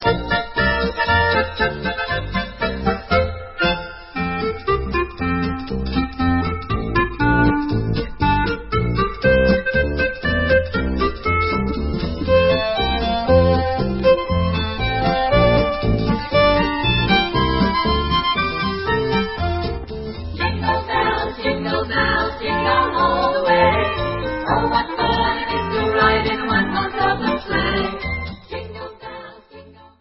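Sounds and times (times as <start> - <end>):
Christmas song: 0.0 - 29.9.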